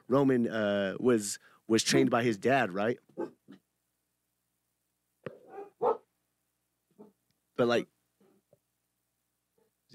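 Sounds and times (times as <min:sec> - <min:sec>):
speech: 0:00.1 - 0:03.4, 0:07.6 - 0:08.0
dog barking: 0:03.2 - 0:03.6, 0:05.3 - 0:06.1, 0:07.0 - 0:07.2.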